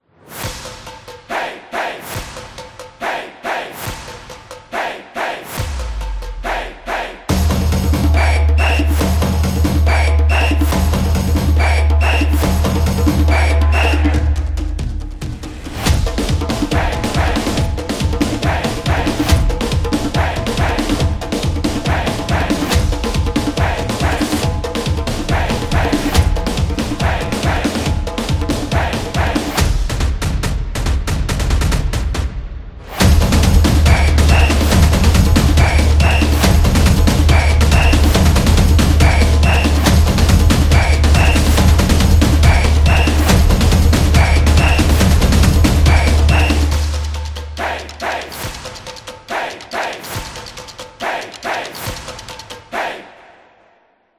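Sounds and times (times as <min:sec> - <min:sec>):
fast football sports music: 0:00.4 - 0:53.2.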